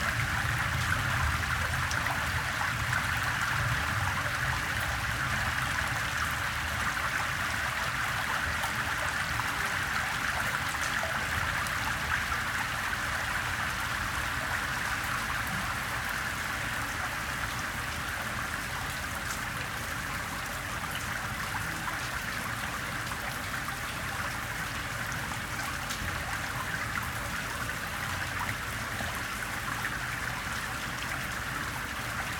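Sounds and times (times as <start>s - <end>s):
gentle rain recorded through an air duct: 0.0s - 32.3s
water running off a pebble street: 0.0s - 32.3s.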